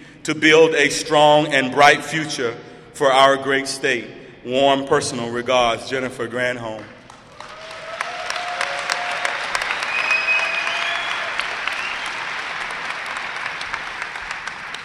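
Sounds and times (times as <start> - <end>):
speech: 0.2 - 6.9
audience applause: 7.1 - 14.8
whistles: 9.5 - 12.3.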